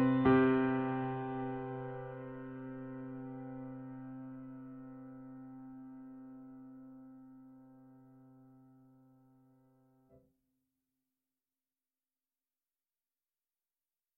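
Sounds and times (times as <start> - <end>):
sweet full grand piano: 0.0 - 9.2.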